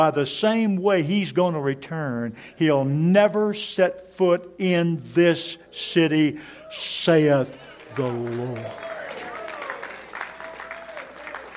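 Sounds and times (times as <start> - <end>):
speech: 0.0 - 8.9
audience applause: 7.8 - 11.5.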